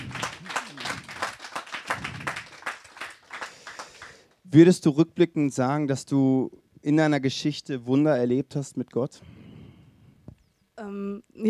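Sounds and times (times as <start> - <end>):
audience clapping: 0.0 - 4.4
speech: 4.5 - 9.4, 10.8 - 11.4.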